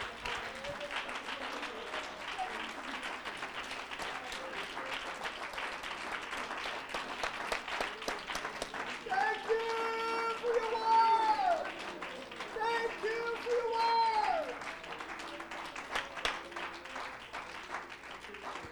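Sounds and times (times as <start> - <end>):
audience clapping: 0.0 - 18.7
faint crowd murmur: 0.0 - 18.7.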